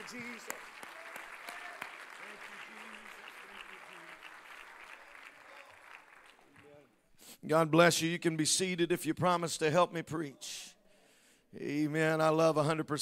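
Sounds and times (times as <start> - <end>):
audience clapping: 0.0 - 7.0
speech: 0.1 - 0.9, 7.4 - 10.7, 11.5 - 13.0.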